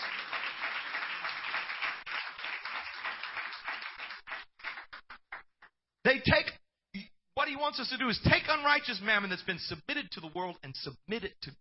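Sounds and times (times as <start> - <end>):
people clapping: 0.0 - 5.7
speech: 6.0 - 11.6.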